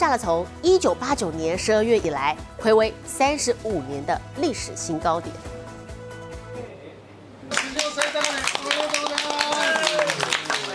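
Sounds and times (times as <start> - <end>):
speech: 0.0 - 5.5
securities traders applauding and cheering at stock exchange: 7.5 - 10.7.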